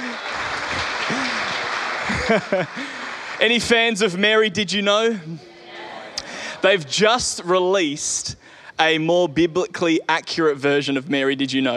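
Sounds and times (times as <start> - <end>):
laughter: 0.0 - 3.8, 5.1 - 7.7
audience applause: 0.0 - 4.5
speech: 2.3 - 5.5, 6.6 - 11.7.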